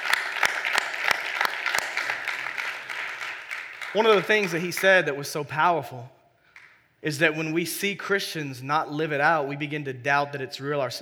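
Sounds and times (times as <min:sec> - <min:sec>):
church congregation applauding after a man's testimony: 0:00.0 - 0:05.4, 0:06.5 - 0:06.8
speech: 0:03.9 - 0:06.2, 0:07.0 - 0:11.0.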